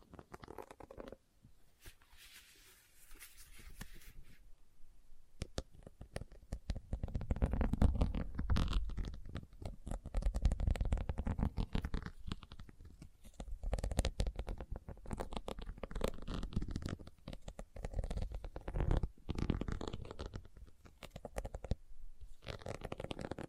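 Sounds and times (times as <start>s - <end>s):
scratching on leather: 0.0s - 1.2s, 6.1s - 23.4s.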